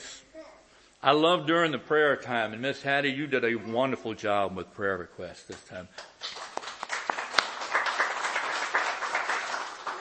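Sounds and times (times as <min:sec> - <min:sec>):
speech: 0:01.0 - 0:06.1
audience clapping: 0:05.5 - 0:09.9.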